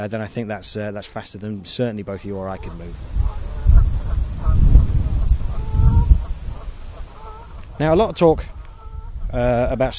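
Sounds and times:
speech: 0:00.0 - 0:03.4, 0:07.8 - 0:08.6, 0:09.3 - 0:09.9
goose honking: 0:02.1 - 0:09.3.

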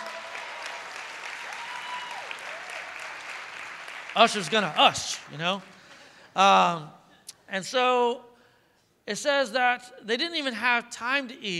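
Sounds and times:
whoops: 0:00.0 - 0:03.0
room full of people applauding the ushers: 0:00.0 - 0:06.2
speech: 0:04.2 - 0:05.8, 0:06.4 - 0:08.3, 0:09.1 - 0:11.5.

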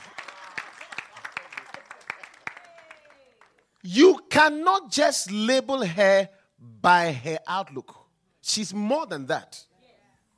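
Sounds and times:
audience clapping: 0:00.0 - 0:03.9
speech: 0:03.8 - 0:09.7.

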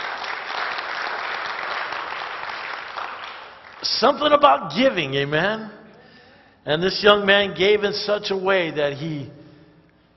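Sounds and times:
audience applause: 0:00.0 - 0:03.8
speech: 0:03.8 - 0:05.8, 0:06.6 - 0:09.4.

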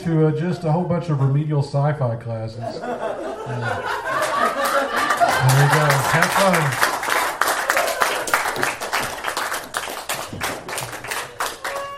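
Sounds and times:
speech: 0:00.0 - 0:07.0
laughter: 0:02.6 - 0:06.8
audience applause: 0:03.9 - 0:11.9.

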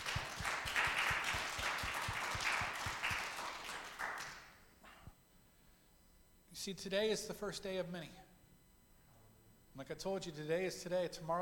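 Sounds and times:
audience applause: 0:00.0 - 0:04.5
speech: 0:06.6 - 0:08.2, 0:09.8 - 0:11.4.

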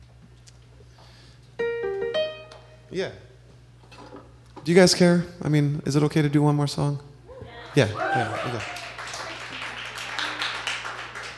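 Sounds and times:
speech: 0:02.9 - 0:03.3, 0:04.7 - 0:07.1, 0:07.7 - 0:08.9
audience clapping: 0:07.8 - 0:11.3.

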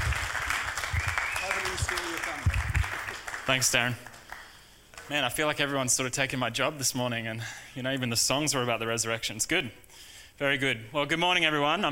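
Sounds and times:
audience applause at a church service: 0:00.0 - 0:05.1
speech: 0:03.5 - 0:04.1, 0:05.1 - 0:11.8.

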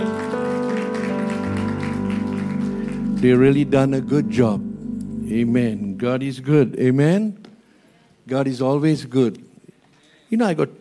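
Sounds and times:
audience applauding: 0:00.0 - 0:04.1
sustained droning keyboard chord: 0:00.0 - 0:07.3
speech: 0:03.2 - 0:04.7, 0:05.3 - 0:07.4, 0:08.2 - 0:09.5, 0:10.3 - 0:10.7.

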